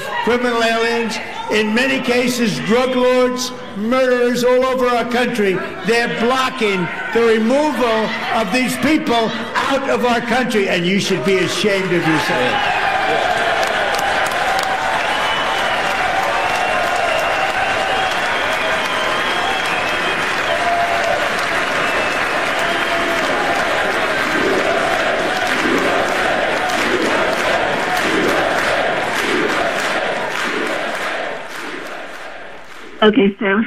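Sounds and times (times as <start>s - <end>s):
speech: 0.2s - 13.3s, 33.0s - 33.6s
audience cheering in the house chamber: 4.1s - 32.8s.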